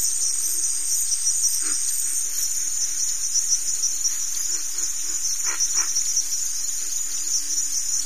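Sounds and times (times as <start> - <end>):
cricket giving a continuous high buzzy trill: 0.0 - 8.0.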